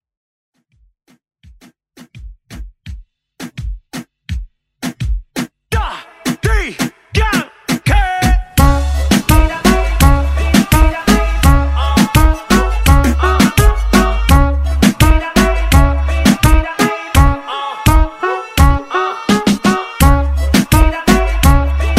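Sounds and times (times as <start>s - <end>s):
reggaeton music: 1.6s - 21.9s.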